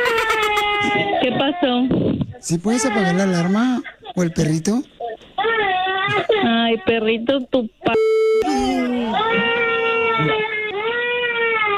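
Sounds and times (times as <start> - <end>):
girl crying: 0.0 - 1.8, 2.7 - 4.2, 5.0 - 6.9, 8.4 - 11.7
speech: 0.8 - 5.0, 6.1 - 9.6.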